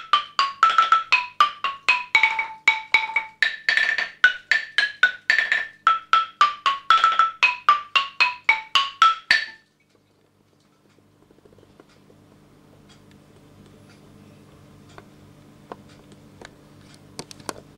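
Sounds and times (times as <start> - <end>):
xylophone: 0.0 - 9.6.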